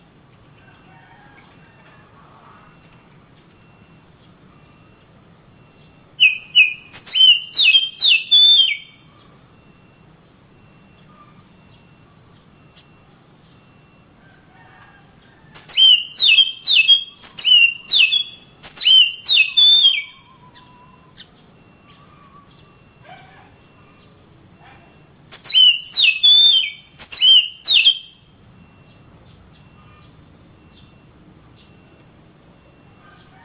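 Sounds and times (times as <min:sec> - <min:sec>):
Oriental magpie-robin singing whistles: 0:06.2 - 0:09.0, 0:15.7 - 0:20.8, 0:25.3 - 0:28.2.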